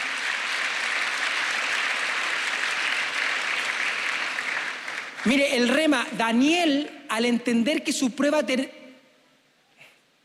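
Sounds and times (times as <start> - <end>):
audience applause: 0.0 - 5.5
speech: 5.2 - 8.8.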